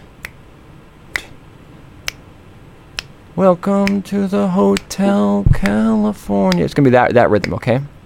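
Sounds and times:
finger snaps keeping a rhythm: 0.2s - 0.4s, 1.1s - 1.4s, 2.0s - 2.3s, 3.0s - 3.2s, 3.8s - 4.1s, 4.7s - 5.0s, 5.6s - 5.8s, 6.5s - 6.8s
speech: 3.4s - 7.9s.

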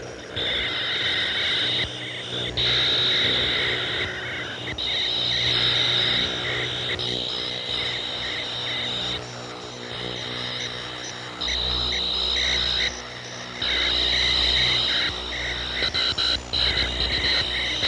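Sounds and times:
electronic crickets chirping over Ohio: 0.0s - 17.8s.

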